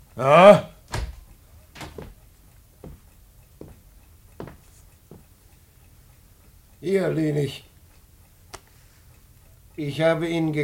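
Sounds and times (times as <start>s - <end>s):
speech: 0.2s - 0.7s, 6.9s - 7.7s, 9.8s - 10.6s
door opening: 0.9s - 2.2s.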